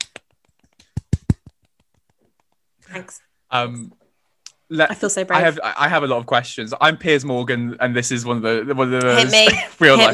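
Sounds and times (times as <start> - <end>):
hands clapping applause: 0.0 - 2.6
speech: 3.0 - 4.0, 4.7 - 10.1.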